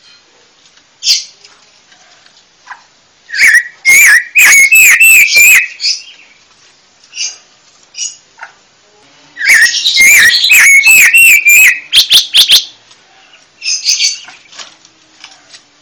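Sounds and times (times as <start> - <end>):
panca warna bird chirping: 2.6 - 6.4, 7.1 - 8.6, 9.4 - 14.7.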